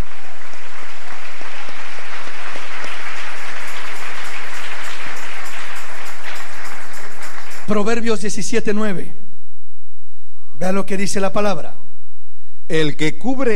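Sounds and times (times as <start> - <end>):
audience applauding: 0.0 - 8.2
speech: 7.7 - 9.2, 10.6 - 11.8, 12.7 - 13.5.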